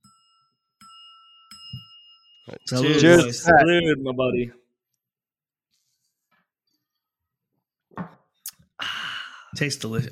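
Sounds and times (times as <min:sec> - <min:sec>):
small bell struck with metal: 0:00.0 - 0:03.3
speech: 0:02.5 - 0:04.6, 0:09.6 - 0:10.1.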